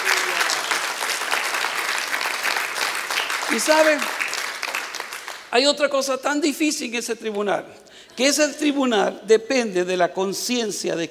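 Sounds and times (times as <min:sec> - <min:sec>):
audience applause: 0:00.0 - 0:05.5
speech: 0:03.5 - 0:04.2, 0:05.5 - 0:11.1.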